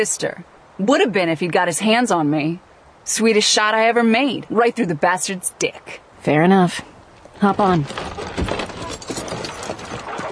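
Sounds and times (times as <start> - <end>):
speech: 0.0 - 8.4
horse hooves clip-clopping: 7.1 - 10.2
horse-drawn wagon rattling and creaking: 7.2 - 10.2.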